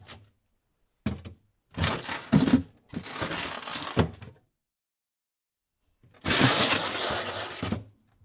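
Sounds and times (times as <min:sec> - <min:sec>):
refrigerator: 0:01.0 - 0:04.4, 0:06.0 - 0:08.2.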